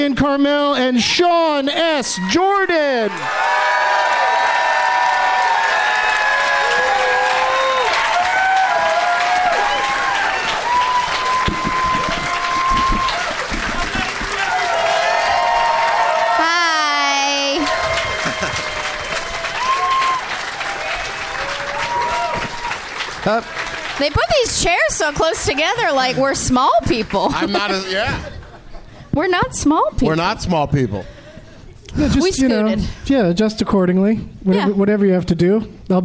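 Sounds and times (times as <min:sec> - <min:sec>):
speech: 0:00.0 - 0:03.8, 0:23.3 - 0:28.3, 0:29.2 - 0:31.2, 0:32.0 - 0:36.0
scattered whoops and cheers: 0:02.0 - 0:22.9
crowd applauding: 0:02.2 - 0:28.3
laughter: 0:18.0 - 0:19.0, 0:27.0 - 0:29.1.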